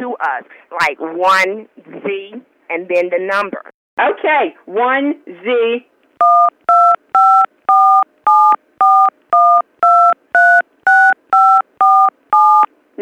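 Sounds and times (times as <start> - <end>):
speech: 0.0 - 6.6
touch-tone phone keypad dialing tones: 6.2 - 12.7.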